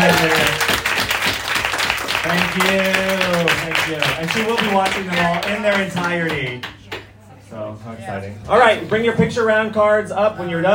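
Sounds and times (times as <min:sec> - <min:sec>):
audience applauding: 0:00.0 - 0:07.0
speech: 0:02.2 - 0:06.8, 0:07.5 - 0:10.7.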